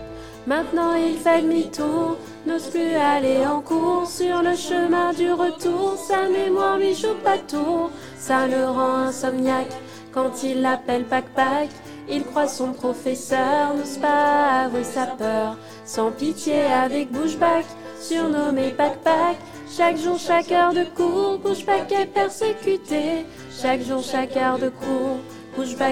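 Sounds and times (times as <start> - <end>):
choir singing: 0.0 - 25.9.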